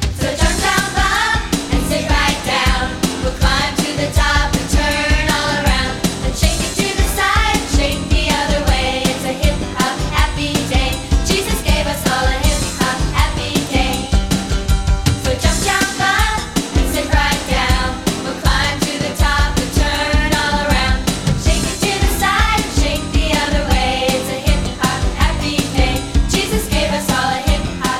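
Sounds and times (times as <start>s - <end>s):
happy hip hop music: 0.2s - 14.7s, 15.4s - 27.9s.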